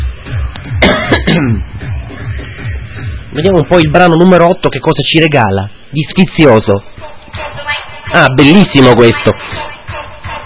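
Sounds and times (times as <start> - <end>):
low pulsing background: 0.0 - 10.4
speech: 0.2 - 2.2, 3.3 - 9.7
person with a hoarse strained voice coughing: 0.8 - 1.6.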